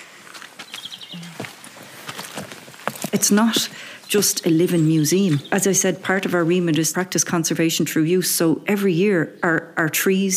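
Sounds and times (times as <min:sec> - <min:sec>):
birds singing in an orchard: 0:00.6 - 0:08.2
speech: 0:03.1 - 0:10.3.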